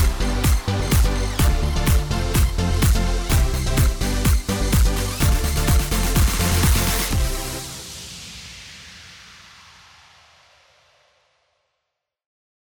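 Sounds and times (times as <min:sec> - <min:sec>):
Christmas square dance music with patter rhythm: 0:00.0 - 0:07.9.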